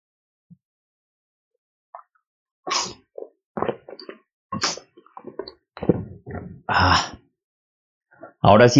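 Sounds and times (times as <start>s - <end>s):
person drinking water from a glass: 2.7s - 7.2s.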